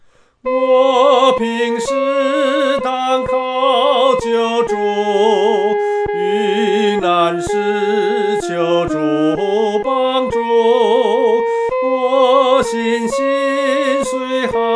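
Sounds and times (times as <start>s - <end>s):
solo singing: 0.4s - 14.7s.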